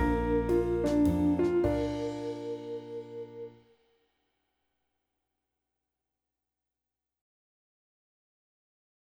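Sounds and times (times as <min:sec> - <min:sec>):
jazz waltz music: 0:00.0 - 0:03.6.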